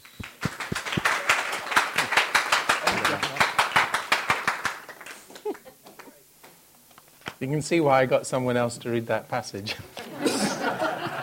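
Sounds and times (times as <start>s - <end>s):
audience clapping to welcome a speaker: 0.0s - 6.6s
laughter: 5.2s - 6.2s, 10.0s - 11.2s
speech: 7.4s - 10.0s.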